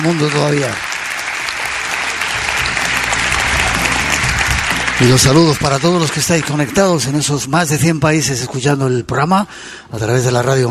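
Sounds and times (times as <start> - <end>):
speech: 0.0 - 0.9, 5.0 - 10.6
theatre audience applause: 0.0 - 7.2.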